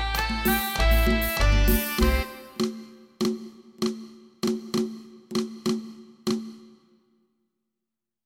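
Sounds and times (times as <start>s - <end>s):
klong yao drum in C major in Thailand: 0.0s - 6.9s.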